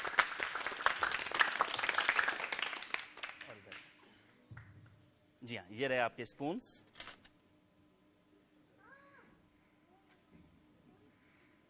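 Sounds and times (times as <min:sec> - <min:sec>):
audience applause welcoming a speaker: 0:00.0 - 0:03.8
speech: 0:05.5 - 0:06.9.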